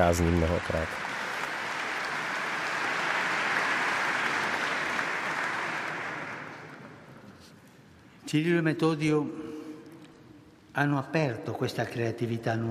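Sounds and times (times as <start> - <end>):
speech: 0.0 - 1.1, 8.3 - 9.5, 10.8 - 12.6
nurses applauding during a sermon: 0.0 - 7.4.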